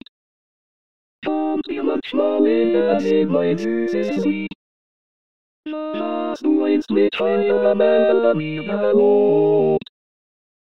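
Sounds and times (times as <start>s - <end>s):
ensemble singing Gypsy songs tutti: 1.3s - 4.5s, 6.0s - 9.8s.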